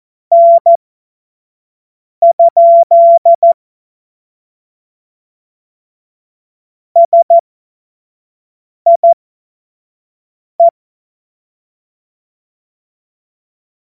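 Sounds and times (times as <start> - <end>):
Morse code course tones: 0.3 - 0.8, 2.2 - 3.6, 7.0 - 7.4.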